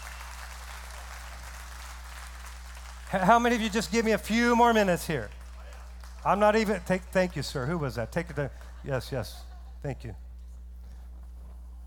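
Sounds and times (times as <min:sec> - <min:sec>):
audience hand clapping: 0:00.0 - 0:08.8
speech: 0:03.1 - 0:05.4, 0:06.2 - 0:10.2.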